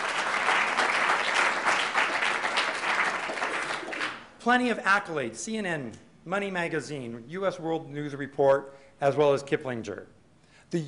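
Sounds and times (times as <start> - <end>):
crowd applauding: 0.0 - 4.3
speech: 4.4 - 10.8.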